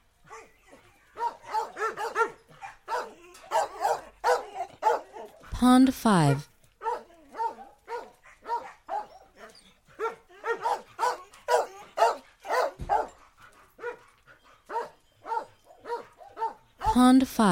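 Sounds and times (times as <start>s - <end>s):
dogs barking: 0.3s - 5.5s, 6.7s - 16.8s
speech: 5.6s - 6.5s, 17.1s - 17.4s.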